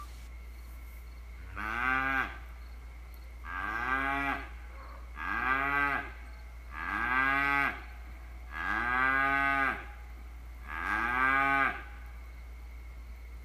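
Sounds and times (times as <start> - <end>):
cow mooing: 1.5 - 2.4, 3.4 - 4.5, 5.2 - 7.8, 8.5 - 9.9, 10.6 - 11.9.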